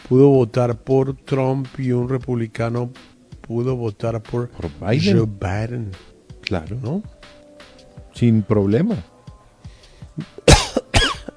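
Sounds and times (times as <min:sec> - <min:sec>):
speech: 0:00.1 - 0:07.2, 0:08.2 - 0:09.1, 0:10.2 - 0:10.5
person coughing: 0:10.2 - 0:11.3.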